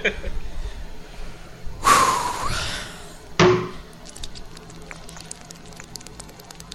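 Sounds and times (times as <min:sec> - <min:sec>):
soft breathing: 0:00.3 - 0:04.0
person gulping water: 0:03.8 - 0:06.7.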